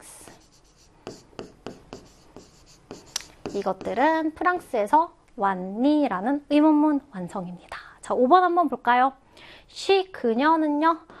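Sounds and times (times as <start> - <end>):
writing on a board during an English grammar lesson: 0.3 - 4.7
speech: 3.5 - 11.1.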